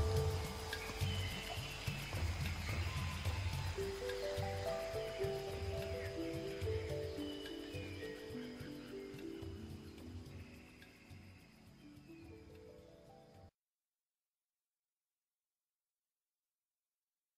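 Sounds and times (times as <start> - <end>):
waterfall: 0.0 - 13.4.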